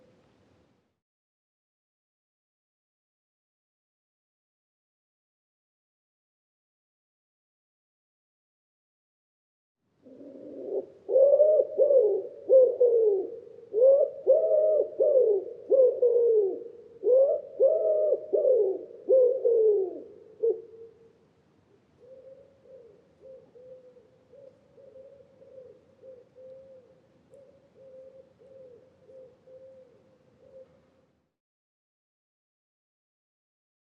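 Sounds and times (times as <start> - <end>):
common wood pigeon cooing: 10.0 - 21.0, 22.0 - 30.9.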